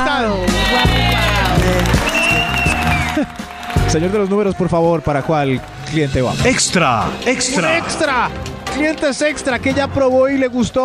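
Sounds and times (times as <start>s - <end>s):
crowd applauding: 0.5s - 9.4s
speech: 3.2s - 10.8s
tonal sounds: 5.7s - 8.7s.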